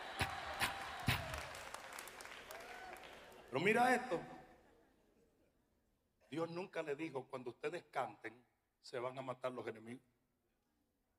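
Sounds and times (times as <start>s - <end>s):
audience clapping along in rhythm: 0.0s - 4.0s
speech: 3.5s - 4.4s, 6.3s - 10.1s.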